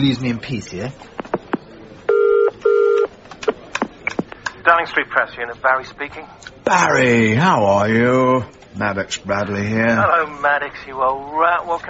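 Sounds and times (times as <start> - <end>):
speech: 0.0 - 1.2, 4.7 - 11.8
telephone dialing beeps: 2.1 - 3.1
telephone ringback tone: 2.1 - 3.1.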